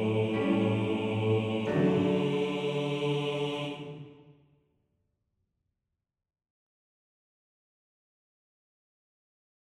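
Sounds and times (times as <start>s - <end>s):
male choir bass part singing a motet: 0.0s - 4.3s.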